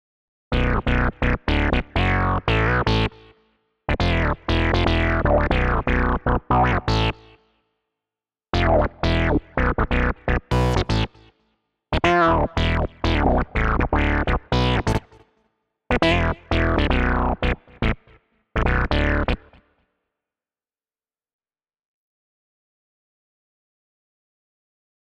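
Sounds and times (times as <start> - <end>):
bass: 0.5 - 7.4, 8.5 - 11.4, 12.0 - 15.3, 15.9 - 19.6.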